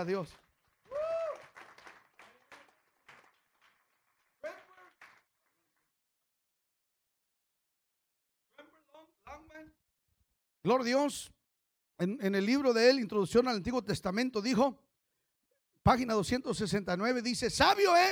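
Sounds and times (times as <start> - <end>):
speech: 0.0 - 0.5, 10.6 - 11.4, 12.0 - 14.8, 15.8 - 18.1
audience applause: 0.4 - 5.6.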